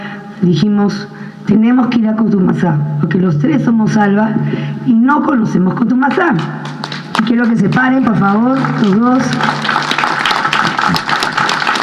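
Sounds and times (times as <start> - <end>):
speech: 0.4 - 6.6, 7.3 - 9.6
crowd applauding in town square: 6.6 - 11.8.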